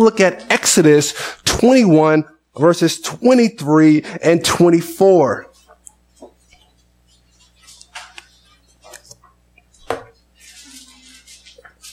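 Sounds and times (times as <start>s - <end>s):
speech: 0.0s - 5.5s
pages of a book turning: 7.6s - 11.9s.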